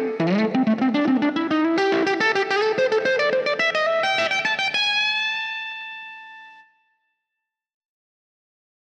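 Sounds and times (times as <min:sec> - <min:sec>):
lead guitar: 0:00.0 - 0:06.8.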